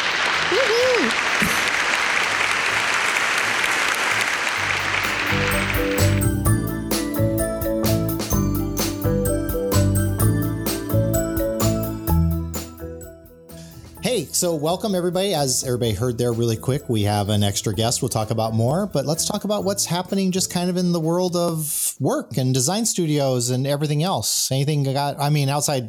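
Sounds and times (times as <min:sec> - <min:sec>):
crowd cheering and clapping sound effect: 0:00.0 - 0:06.5
speech: 0:00.5 - 0:01.2, 0:14.2 - 0:25.8
upbeat music jingle with steady rhythmic hits: 0:04.6 - 0:21.5.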